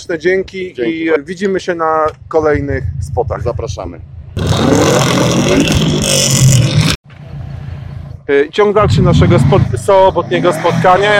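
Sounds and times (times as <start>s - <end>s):
speech: 0.0s - 6.6s, 8.3s - 11.1s
Subaru car engine revving: 4.3s - 7.4s, 8.7s - 11.1s.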